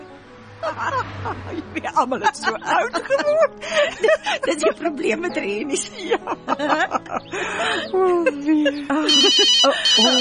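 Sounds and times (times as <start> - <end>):
people laughing: 0.6 - 10.2
speech: 0.7 - 10.2
telephone ringing in high trilling electronic bursts: 9.1 - 10.2.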